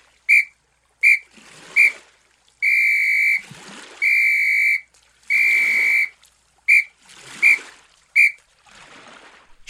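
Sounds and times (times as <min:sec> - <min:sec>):
splashing: 0:00.0 - 0:09.6
loud high-pitched whistle blowing the SOS distress signal: 0:00.3 - 0:02.0, 0:02.6 - 0:03.4, 0:04.0 - 0:08.4.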